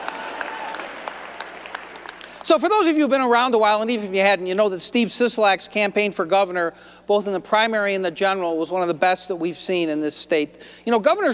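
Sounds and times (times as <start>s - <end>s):
crowd clapping: 0.0s - 2.5s
speech: 2.5s - 11.3s.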